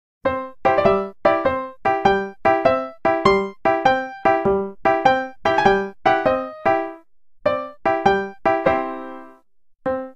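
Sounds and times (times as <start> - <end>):
piano melody: 0.2 - 10.1.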